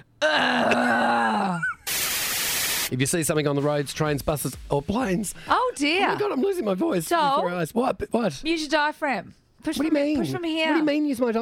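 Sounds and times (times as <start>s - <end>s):
person imitating a loud grunt: 0.2s - 1.7s
hiss: 1.9s - 2.9s
speech: 2.9s - 11.4s.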